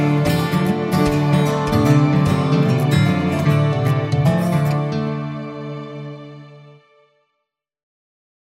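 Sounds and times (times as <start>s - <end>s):
strings: 0.0s - 7.3s.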